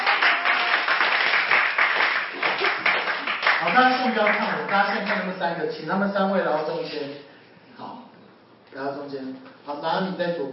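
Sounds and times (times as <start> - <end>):
audience applause: 0.0 - 5.2
speech: 3.8 - 7.9, 8.7 - 10.5.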